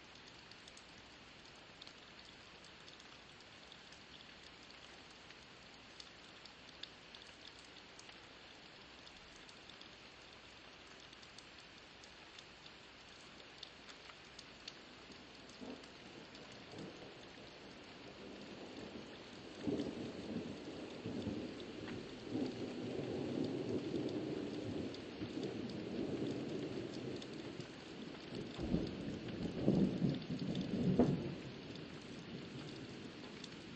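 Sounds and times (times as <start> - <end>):
early morning thunderstorm: 18.4 - 27.6, 28.3 - 33.4.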